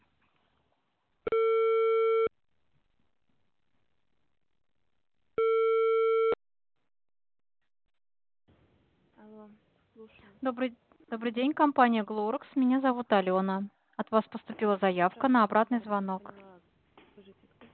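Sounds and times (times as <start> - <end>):
telephone ringback tone while an intercom call connects: 1.3 - 2.3, 5.4 - 6.4
speech: 9.3 - 16.5.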